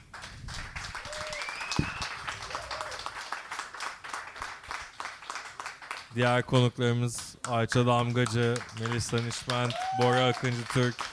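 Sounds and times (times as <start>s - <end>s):
audience applause: 0.1s - 6.1s, 8.2s - 11.1s
whistle: 1.1s - 2.2s
speech: 6.2s - 11.1s.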